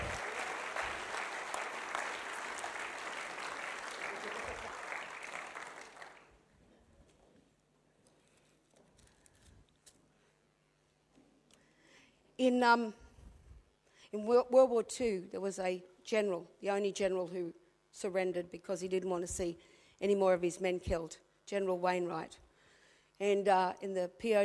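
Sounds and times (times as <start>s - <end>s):
short loud cheering shout: 0.0s - 4.9s
audience applause: 0.0s - 6.3s
speech: 12.4s - 13.0s, 14.1s - 22.4s, 23.2s - 24.4s.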